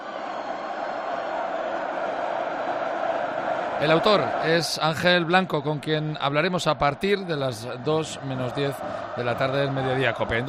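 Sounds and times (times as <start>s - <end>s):
San Fermín crowd roaring as the gaiteros leave the town hall: 0.0s - 10.4s
speech: 3.8s - 10.4s.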